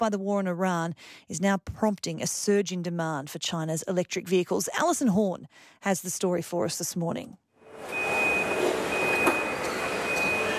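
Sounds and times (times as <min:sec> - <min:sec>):
speech: 0:00.0 - 0:08.0
robotic factory machinery droning in a car factory: 0:07.6 - 0:10.5.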